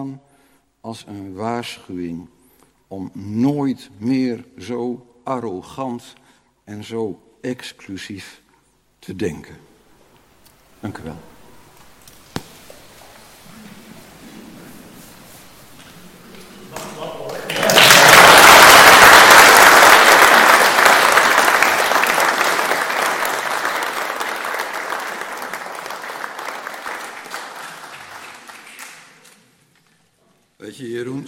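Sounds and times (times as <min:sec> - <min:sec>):
speech: 0:00.0 - 0:08.4, 0:09.0 - 0:09.7, 0:10.8 - 0:11.3
audience applause: 0:16.7 - 0:29.4.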